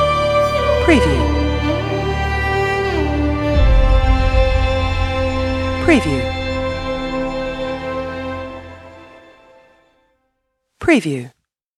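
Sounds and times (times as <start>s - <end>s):
emotional nostalgic dramatic strings film score: 0.0s - 10.0s.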